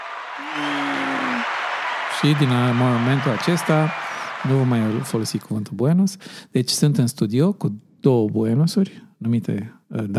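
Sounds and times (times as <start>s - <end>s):
applause: 0.0s - 5.7s
speech: 0.4s - 0.8s, 2.2s - 10.1s.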